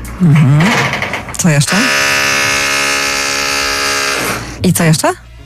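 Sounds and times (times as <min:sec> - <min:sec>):
speech: 0:00.2 - 0:02.2, 0:04.6 - 0:05.2
stage set construction motorized whine in amphitheater: 0:01.7 - 0:04.6.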